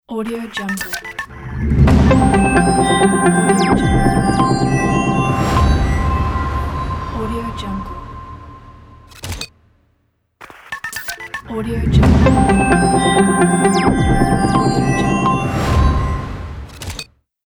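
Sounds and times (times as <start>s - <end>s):
digital logo sound: 0.6s - 9.5s, 11.8s - 16.7s.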